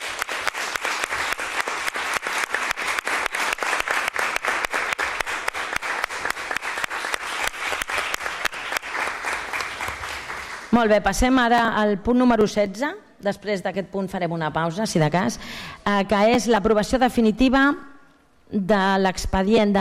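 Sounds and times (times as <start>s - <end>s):
audience applause: 0.0s - 10.7s
speech: 10.8s - 17.9s, 18.5s - 19.7s.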